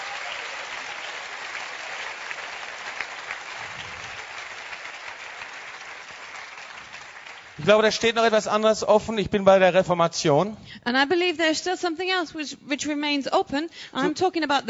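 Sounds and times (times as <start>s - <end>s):
audience applauding: 0.0s - 8.4s
speech: 7.6s - 14.6s.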